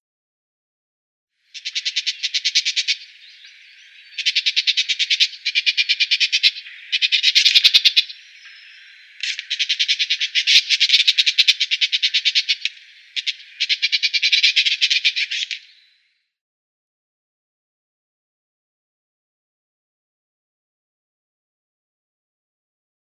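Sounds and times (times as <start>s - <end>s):
Woodchat Shrike calling: 1.5s - 16.0s.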